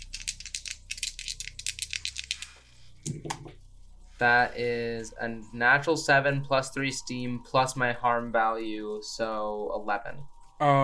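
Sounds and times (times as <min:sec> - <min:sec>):
dice rattling and clattering: 0:00.0 - 0:02.6
speech: 0:04.2 - 0:10.8.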